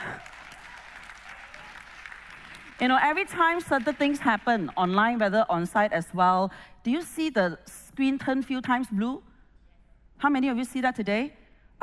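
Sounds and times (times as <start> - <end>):
church congregation applause for the live stream team: 0.0 - 4.8
speech: 2.8 - 9.3, 10.2 - 11.8.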